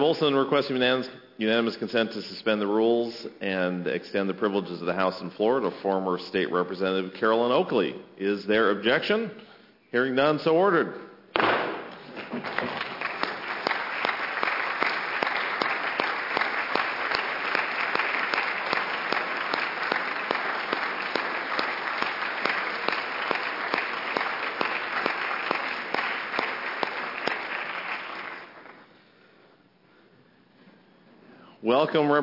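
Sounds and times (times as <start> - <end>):
speech: 0.0 - 11.0, 12.3 - 12.7, 31.8 - 32.2
applause in legislative chamber: 12.2 - 28.9.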